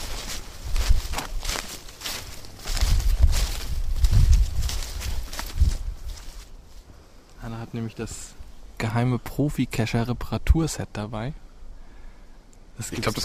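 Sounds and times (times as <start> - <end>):
footsteps of a few people setting off on foot for geocaching: 0.0 - 7.0
speech: 7.7 - 11.4, 12.8 - 13.2.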